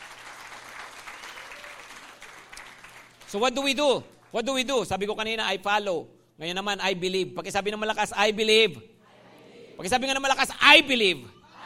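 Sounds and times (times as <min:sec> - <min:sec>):
congregation applause during a sermon at a worship service: 0:00.0 - 0:04.4
speech: 0:03.3 - 0:08.9, 0:09.8 - 0:11.6.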